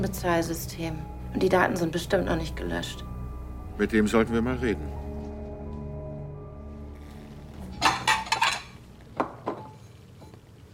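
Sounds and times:
speech: 0.0s - 3.1s, 3.8s - 5.0s
dishes and glasses clinking as a table is set: 7.6s - 10.4s.

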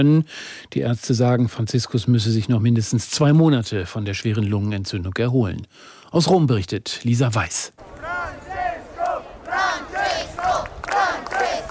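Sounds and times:
speech: 0.0s - 8.0s
crowd waiting outside Gemelli hospital in Rome for Pope Francis: 7.8s - 11.6s.

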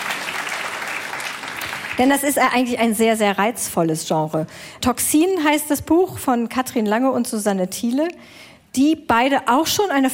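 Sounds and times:
applause: 0.0s - 2.4s
speech: 2.0s - 10.1s.

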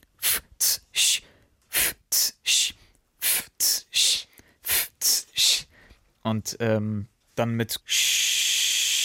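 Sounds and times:
beatboxer's warm-up hissing breath bursts: 0.2s - 6.0s, 7.9s - 9.0s
speech: 6.3s - 8.0s.

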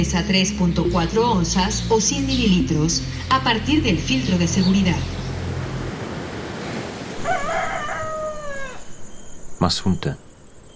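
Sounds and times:
speech: 0.0s - 5.2s, 9.6s - 10.2s
hiss: 5.2s - 10.7s
rooster crowing: 7.2s - 9.4s.

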